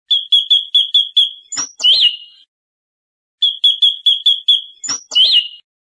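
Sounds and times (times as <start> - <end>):
bicudo singing: 0.1 - 2.5, 3.4 - 5.7.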